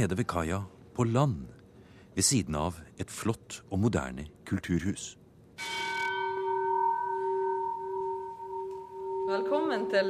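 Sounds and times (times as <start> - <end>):
speech: 0.0 - 1.6, 2.2 - 5.8, 9.3 - 10.0
ship's bell of the old Hurtigruten ship Finnmarken ringing: 5.6 - 10.0.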